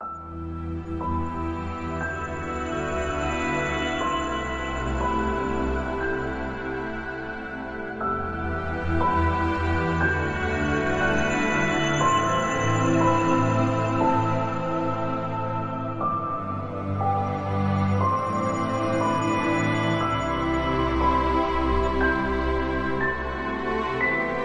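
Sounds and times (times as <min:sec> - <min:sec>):
welling ambient music: 0:00.0 - 0:24.4.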